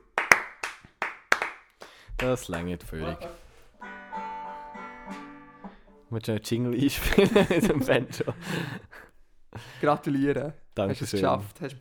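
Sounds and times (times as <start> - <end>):
small round of hand clapping: 0.0 - 2.8
speech: 2.2 - 3.4, 6.1 - 8.9, 9.8 - 11.8
laughter: 6.8 - 9.9.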